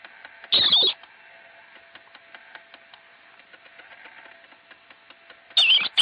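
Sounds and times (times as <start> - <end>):
marmot screams: 0.5 - 1.0, 5.6 - 6.0.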